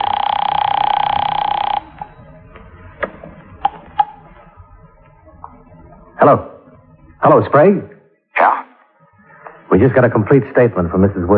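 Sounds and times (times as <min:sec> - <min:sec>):
telephone ringing: 0:00.0 - 0:02.4
speech: 0:06.2 - 0:06.5, 0:07.2 - 0:07.9, 0:09.8 - 0:11.3.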